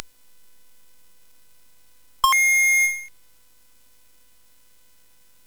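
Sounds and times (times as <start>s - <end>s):
CSG 8580R5 sound chip synth: 2.2s - 3.1s.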